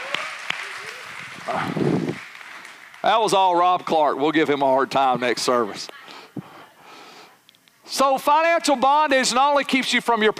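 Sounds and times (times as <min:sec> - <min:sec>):
audience applause: 0:00.0 - 0:03.9
speech: 0:03.0 - 0:06.0, 0:07.9 - 0:10.3.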